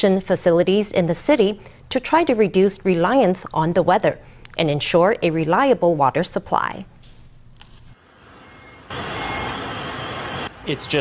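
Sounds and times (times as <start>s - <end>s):
speech: 0.0s - 6.9s, 10.7s - 11.0s
water delivery trucks: 8.0s - 11.0s.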